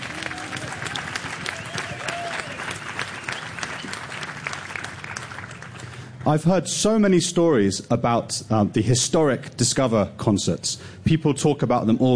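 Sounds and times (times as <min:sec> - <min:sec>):
audience applause: 0:00.0 - 0:06.2
speech: 0:06.3 - 0:12.1.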